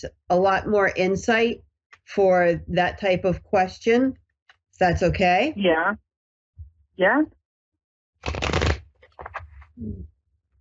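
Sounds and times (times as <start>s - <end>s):
speech: 0.0s - 4.2s, 4.8s - 6.0s, 7.0s - 7.4s, 8.2s - 8.4s, 9.8s - 10.1s
Lenormand oracle card deck being shuffled: 8.2s - 9.7s.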